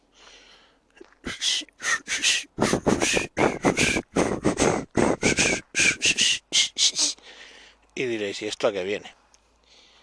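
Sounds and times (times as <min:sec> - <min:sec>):
person whistling a national anthem: 0:01.4 - 0:07.0
speech: 0:08.4 - 0:09.2.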